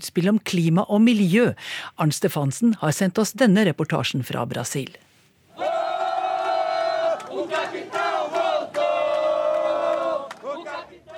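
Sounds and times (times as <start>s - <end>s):
speech: 0.0s - 5.7s
supporters shouting at a political rally: 5.6s - 11.1s.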